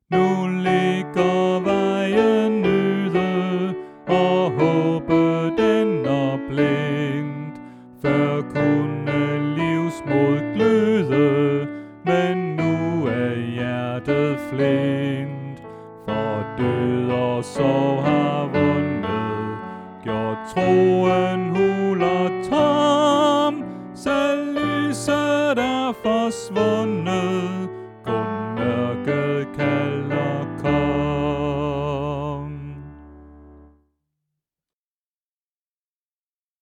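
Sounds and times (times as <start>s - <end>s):
soprano voice: 0.1s - 33.0s.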